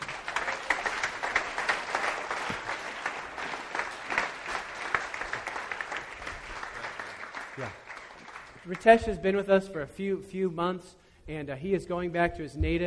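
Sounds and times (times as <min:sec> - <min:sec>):
applause: 0:00.0 - 0:09.2
speech: 0:08.7 - 0:12.8.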